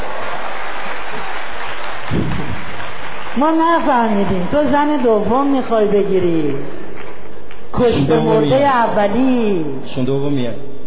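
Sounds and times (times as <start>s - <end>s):
audience applause at a live event: 0.0s - 7.8s
speech: 3.4s - 6.8s, 7.7s - 10.8s.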